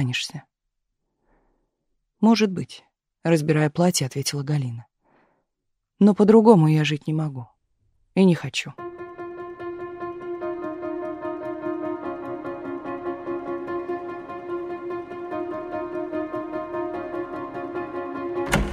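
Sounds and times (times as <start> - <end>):
speech: 0.0 - 0.5, 2.2 - 4.9, 6.0 - 7.5, 8.2 - 8.9
steady layered musical drone: 8.8 - 18.7
door slamming shut: 18.4 - 18.7.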